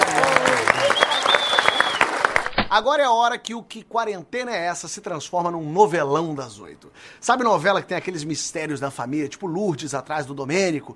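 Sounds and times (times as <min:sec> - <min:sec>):
round of applause: 0:00.0 - 0:02.6
speech: 0:02.7 - 0:10.9.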